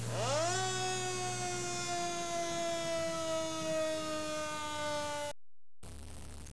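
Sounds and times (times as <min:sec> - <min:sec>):
siren: 0:00.1 - 0:05.3.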